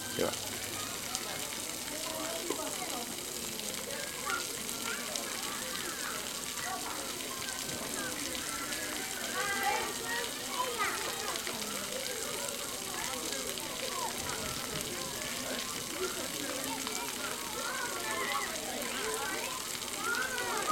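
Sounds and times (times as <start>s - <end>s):
water splashing from tipping buckets: 0.0s - 20.7s.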